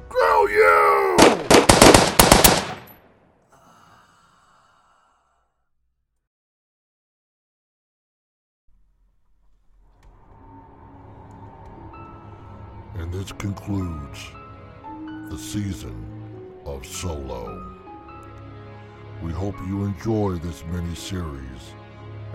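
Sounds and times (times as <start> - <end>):
machine-gun fire in an audio drama: 1.2 - 3.0
speech: 13.2 - 14.4, 15.3 - 17.8, 19.2 - 22.3.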